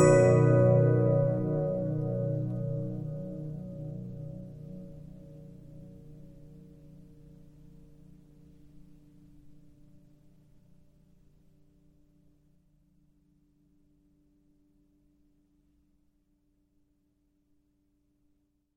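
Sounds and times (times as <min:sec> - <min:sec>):
Regina 15-inch disc music box: 0:00.0 - 0:03.0.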